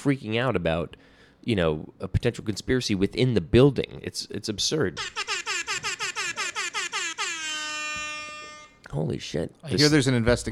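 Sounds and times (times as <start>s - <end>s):
speech: 0.0s - 5.3s, 8.9s - 10.5s
air horn siren sound effect: 5.1s - 8.8s.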